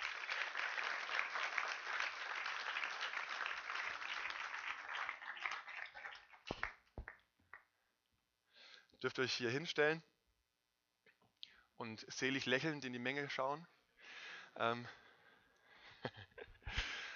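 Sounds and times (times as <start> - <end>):
applause: 0.0 - 7.7
speech: 9.0 - 10.1, 11.9 - 13.8, 14.6 - 15.0.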